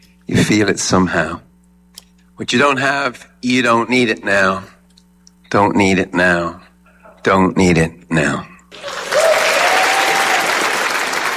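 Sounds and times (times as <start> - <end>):
speech: 0.3 - 1.5, 2.4 - 4.7, 5.5 - 6.6, 7.2 - 9.0
audience applause in a church: 8.7 - 11.3.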